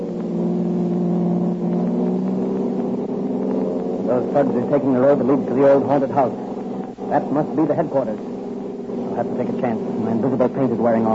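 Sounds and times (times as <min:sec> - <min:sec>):
car engine during a road chase: 0:00.0 - 0:11.1
speech: 0:04.2 - 0:06.5, 0:07.1 - 0:08.3, 0:09.2 - 0:11.1.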